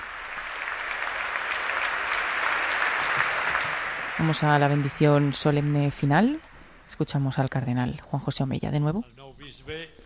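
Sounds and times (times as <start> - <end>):
strong audience applause: 0.0 - 6.7
speech: 4.2 - 9.9.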